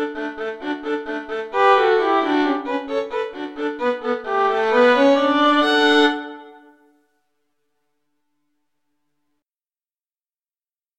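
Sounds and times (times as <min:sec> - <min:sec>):
violin duet: 0:00.0 - 0:06.7.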